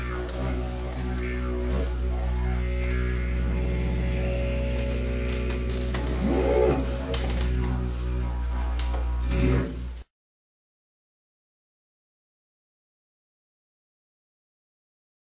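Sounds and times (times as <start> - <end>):
didgeridoo imitating a steam train: 0.0 - 10.1.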